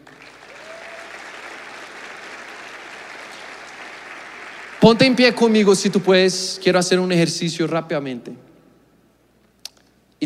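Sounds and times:
audience applauding: 0.0 - 5.6
speech: 4.8 - 8.5.

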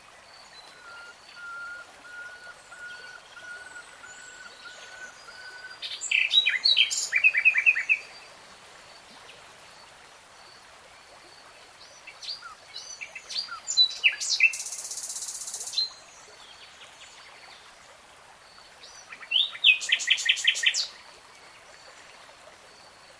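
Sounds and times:
nightingale song: 0.2 - 8.3, 11.8 - 17.6, 18.6 - 21.0.

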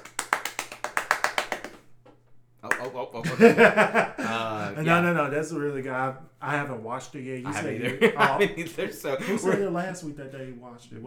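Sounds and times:
hand clapping: 0.0 - 3.8
speech: 2.8 - 11.0
laughter: 3.2 - 5.2, 7.5 - 10.0.

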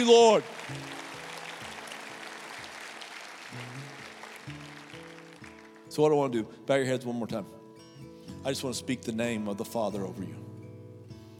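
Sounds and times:
speech: 0.0 - 0.9, 6.0 - 7.6, 8.4 - 10.4
audience applause: 0.0 - 5.9.

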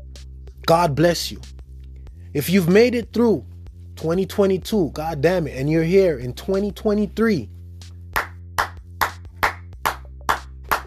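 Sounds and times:
speech: 0.7 - 1.5, 2.3 - 7.6
hand claps: 7.8 - 10.8.

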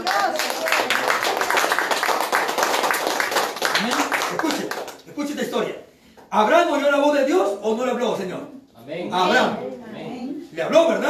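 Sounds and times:
crowd clapping: 0.0 - 5.3
speech: 5.5 - 9.7, 10.6 - 11.0.

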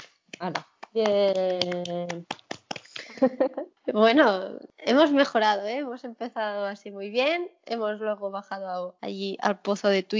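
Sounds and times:
hand clapping: 0.0 - 3.3
speech: 0.4 - 2.4, 3.2 - 10.1
laughter: 3.0 - 3.7.

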